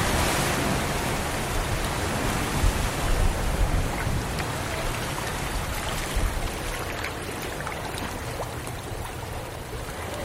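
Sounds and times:
waves washing against the shore: 0.0s - 10.2s
bubbling and splashing: 3.0s - 10.2s.

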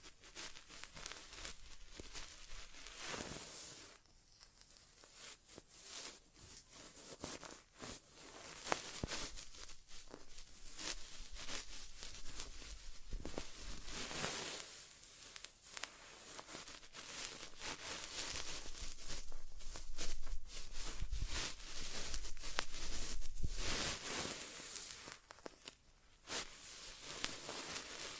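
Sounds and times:
inner ear exam crinkling, rustling and scratching: 0.0s - 28.1s.

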